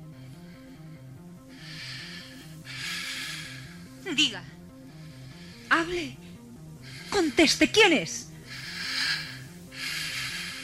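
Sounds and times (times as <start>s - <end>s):
breathing on the other end of a telephone line: 0.0s - 4.0s, 4.8s - 5.7s, 8.4s - 10.6s
speech: 4.1s - 4.6s, 5.7s - 6.2s, 7.1s - 8.2s.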